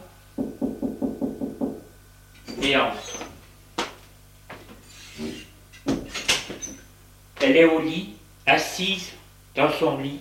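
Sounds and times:
knocking on a door: 0:00.4 - 0:01.9
speech: 0:02.6 - 0:03.1, 0:07.5 - 0:10.1.

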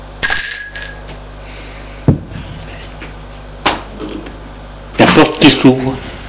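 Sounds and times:
doorbell ringing: 0:00.2 - 0:01.3
speech: 0:05.4 - 0:06.1.

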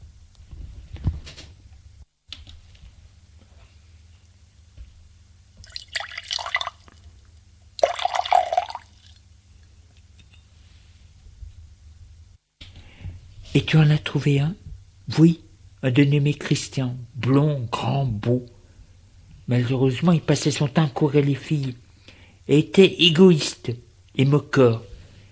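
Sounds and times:
drink pouring into a glass: 0:05.6 - 0:07.0, 0:07.8 - 0:09.2
speech: 0:13.6 - 0:18.6, 0:19.5 - 0:21.8, 0:22.5 - 0:24.9.

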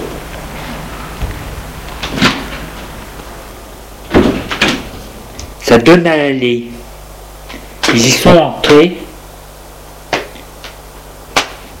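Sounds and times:
heavy apartment building door opening: 0:00.0 - 0:05.4
steady low hiss: 0:00.0 - 0:11.7
speech: 0:05.7 - 0:06.8, 0:07.9 - 0:09.0.

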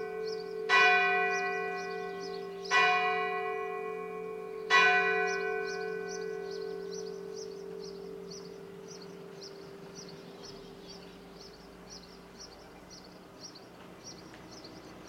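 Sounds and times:
church bell striking noon in Saint-Suliac: 0:00.0 - 0:11.3.

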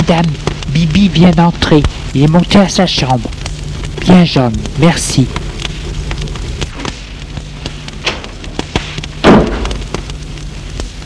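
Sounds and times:
speech: 0:00.1 - 0:03.4, 0:04.0 - 0:05.4
door being shut by the maid: 0:09.2 - 0:09.8.

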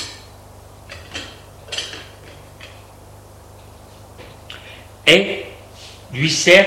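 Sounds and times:
breakfast tray with dishes set down, crockery clinking: 0:00.9 - 0:02.8
speech: 0:05.1 - 0:05.5, 0:06.1 - 0:06.6.

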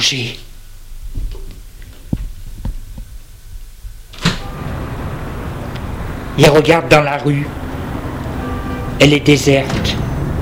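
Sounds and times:
speech: 0:00.0 - 0:00.5, 0:06.4 - 0:07.6, 0:09.0 - 0:10.0
building entrance door opening: 0:04.1 - 0:05.0, 0:09.5 - 0:10.3.

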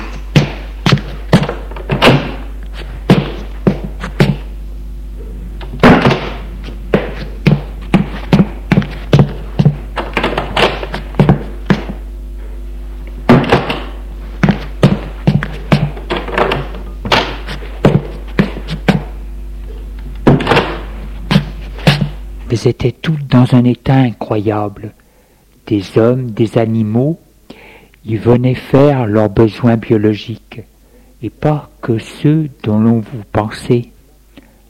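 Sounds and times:
doors of rooms being opened and knocked about: 0:00.0 - 0:02.5, 0:05.6 - 0:12.0, 0:13.3 - 0:19.1, 0:20.2 - 0:22.1
speech: 0:22.6 - 0:25.0, 0:25.7 - 0:27.2, 0:28.0 - 0:33.9.

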